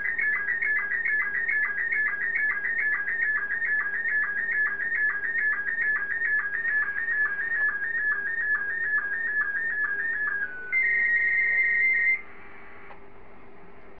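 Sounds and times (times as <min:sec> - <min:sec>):
SSTV signal tones: 0:00.0 - 0:12.3.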